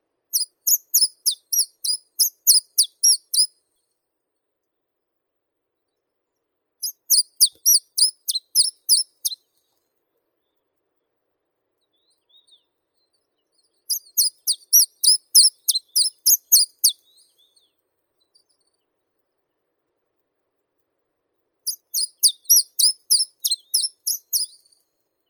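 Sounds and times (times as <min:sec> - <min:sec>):
Caucasian chiffchaff Phylloscopus lorenzii singing: 0:00.4 - 0:03.5, 0:06.8 - 0:09.4, 0:13.9 - 0:17.6, 0:21.7 - 0:24.7.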